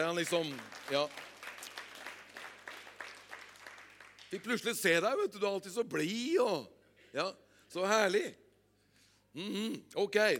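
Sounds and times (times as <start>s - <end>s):
speech: 0.0s - 1.3s, 4.3s - 8.4s, 9.3s - 10.3s
faint applause from an audience at a gathering: 0.0s - 5.0s.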